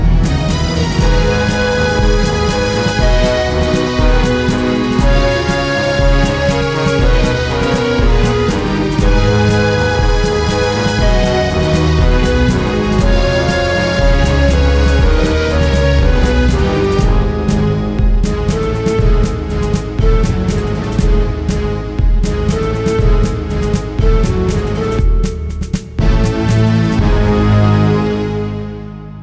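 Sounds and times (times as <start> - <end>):
melody: 0.0 - 28.0
musical accompaniment: 0.0 - 29.2.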